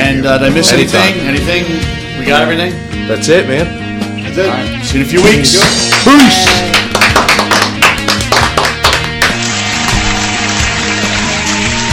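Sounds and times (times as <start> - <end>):
speech: 0.2 - 3.8, 4.4 - 7.4
reversed clapping: 5.6 - 11.9.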